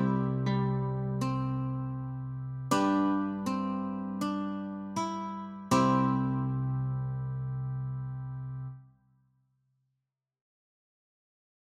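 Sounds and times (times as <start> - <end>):
guitar notes and chords: 0.0 - 8.8.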